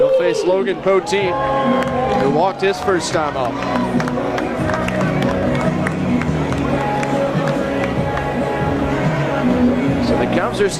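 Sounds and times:
speech: 0.2 - 4.4, 10.1 - 10.7
Cubs fans at a baseball game clapping for a player: 1.6 - 8.8.

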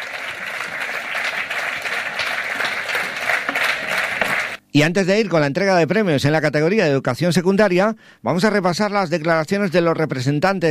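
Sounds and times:
audience applause for a choir: 0.0 - 4.6
speech: 4.7 - 10.6.

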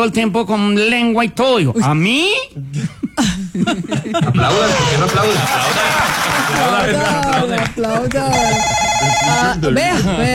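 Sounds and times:
speech: 0.0 - 10.3
laughter: 2.8 - 8.9, 9.5 - 10.3
people talking loudly: 4.4 - 10.3
electronic telephone ringing: 8.3 - 9.6.

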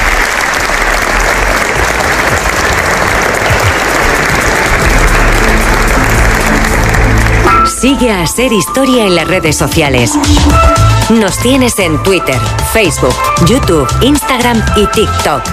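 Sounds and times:
large audience clapping: 0.0 - 8.1
speech: 7.8 - 15.5.

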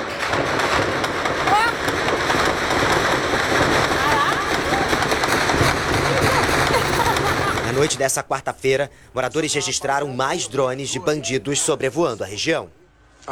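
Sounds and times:
gunfire: 0.0 - 8.1
laughter: 0.2 - 12.8
speech: 7.8 - 13.2.

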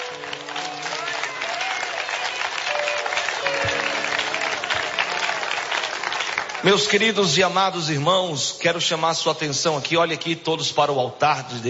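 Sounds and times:
loud applause: 0.0 - 7.8
speech: 6.6 - 11.6.

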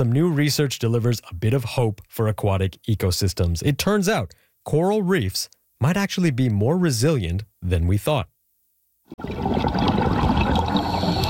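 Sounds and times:
speech: 0.0 - 8.3, 9.1 - 10.1
diver breathing underwater: 9.3 - 11.2.

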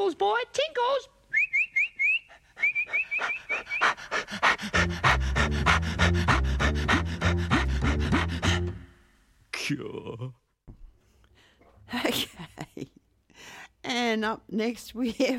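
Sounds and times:
speech: 0.0 - 1.1, 9.7 - 10.4, 14.1 - 15.3
dog whining: 2.0 - 7.6
Great Dane puppy panting: 2.2 - 8.9.

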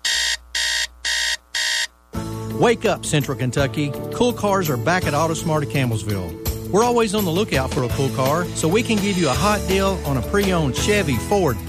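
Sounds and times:
alarm clock ringing in bright electronic tone: 0.0 - 1.9
speech: 2.6 - 11.6.

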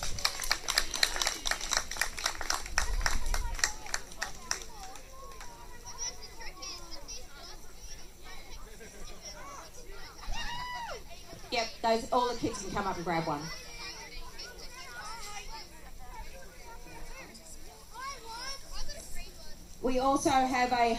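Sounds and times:
crowd applause: 0.0 - 6.2
murmur of chatter: 0.0 - 20.9
children's voices: 2.4 - 20.9
speech: 11.8 - 13.6, 19.9 - 20.9.

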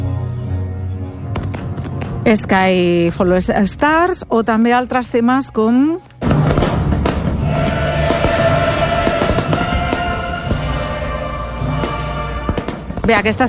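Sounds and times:
music: 0.0 - 13.4
speech: 2.3 - 6.1, 13.1 - 13.4
fireworks bursting in a musical display: 6.2 - 13.4.

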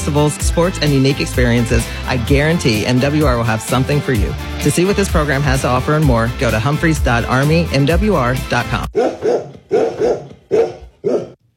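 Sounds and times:
speech: 0.1 - 9.2
golden retriever dogs barking: 8.9 - 11.4.

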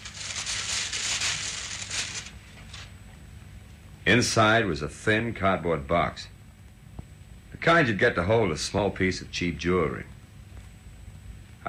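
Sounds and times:
thin brown paper crinkling as it is unwrapped: 0.0 - 3.0
speech: 4.1 - 6.3, 7.6 - 10.1.

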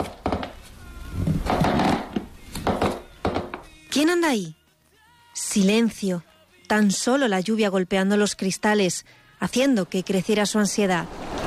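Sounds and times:
wooden floor creaking: 0.0 - 3.7, 11.1 - 11.4
speech: 4.0 - 4.6, 5.4 - 11.3.

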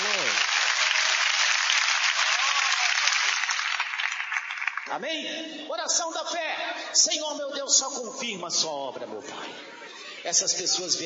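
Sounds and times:
audience clapping hands: 0.0 - 5.0
speech: 4.9 - 11.0
laughter: 9.2 - 10.6.

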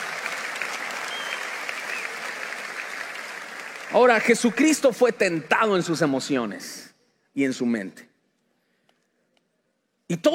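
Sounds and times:
audience applauding loudly: 0.0 - 5.8
speech: 3.9 - 8.1, 10.1 - 10.3.

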